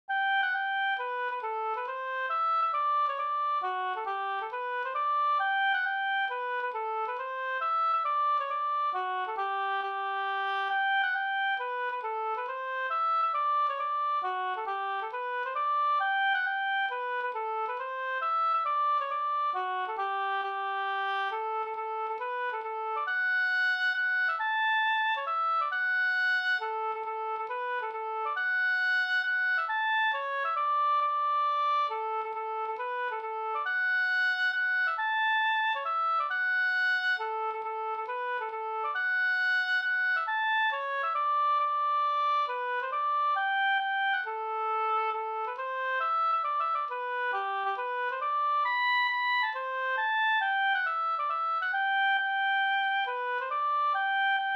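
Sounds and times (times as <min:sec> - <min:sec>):
hambo polska folk dance tune: 0:00.1 - 0:54.5.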